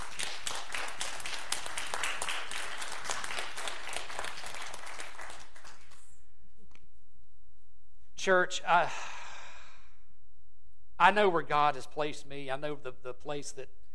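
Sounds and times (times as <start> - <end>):
audience applause: 0.0 - 6.1
speech: 8.2 - 9.1, 11.0 - 13.8.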